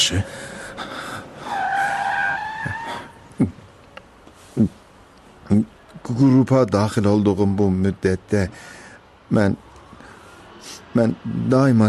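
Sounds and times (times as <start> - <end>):
speech: 0.1 - 0.4, 5.5 - 9.7, 10.9 - 11.8
car braking to a stop with tire squeal: 1.3 - 3.2.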